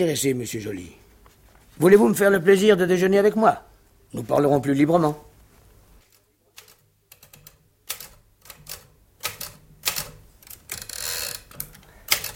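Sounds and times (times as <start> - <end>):
speech: 0.0 - 1.0, 1.8 - 5.3
keys clattering on a children's typewriter: 6.6 - 12.3.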